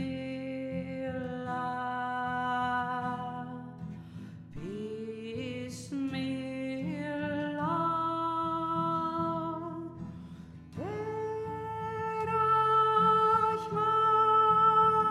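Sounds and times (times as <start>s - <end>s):
solo voice singing: 0.0s - 3.8s, 4.6s - 10.1s, 10.8s - 15.0s.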